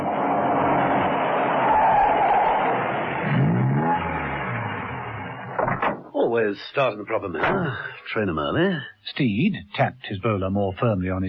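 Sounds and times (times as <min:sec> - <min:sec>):
Rolls-Royce car driving in and parking: 0:00.0 - 0:06.1
speech: 0:06.4 - 0:11.2.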